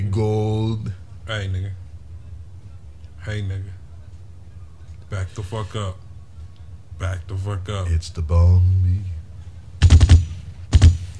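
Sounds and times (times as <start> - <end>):
speech: 0.2 - 1.8, 3.2 - 3.8, 5.1 - 6.0, 7.0 - 9.2
gunfire bursts: 9.8 - 11.1.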